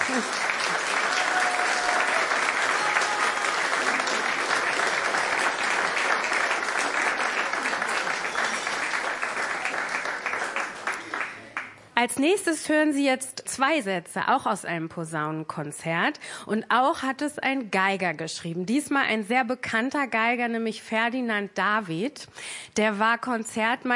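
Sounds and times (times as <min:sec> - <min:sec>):
concert audience applause after a trombone concerto performance: 0:00.0 - 0:11.8
speech: 0:12.0 - 0:23.9.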